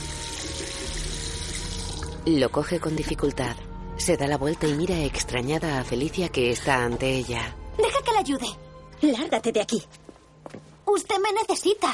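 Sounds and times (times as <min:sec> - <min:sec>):
water running into a bucket: 0:00.0 - 0:02.3
speech: 0:02.2 - 0:10.0, 0:10.9 - 0:11.9.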